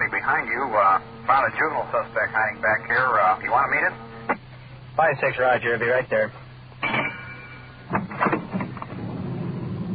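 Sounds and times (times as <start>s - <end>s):
police car engine rumbling turning into an alley: 0.0s - 9.9s
speech: 0.4s - 4.1s, 5.0s - 6.4s
knocks and bumps: 6.8s - 9.3s.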